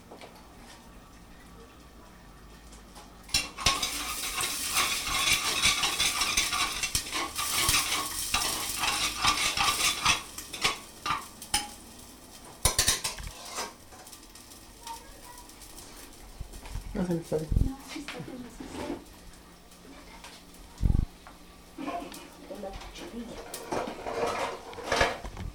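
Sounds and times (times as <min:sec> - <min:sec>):
onion frying and browning in a pan: 0:00.0 - 0:25.5
wooden spoon stirring and scraping a pan: 0:03.3 - 0:11.7, 0:12.6 - 0:14.2, 0:18.0 - 0:19.1, 0:21.8 - 0:25.3.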